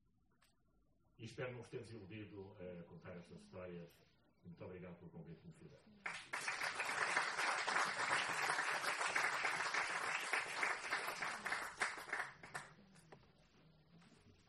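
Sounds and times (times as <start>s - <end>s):
speech: 1.2s - 6.4s
audience applause after a speech: 6.1s - 12.7s.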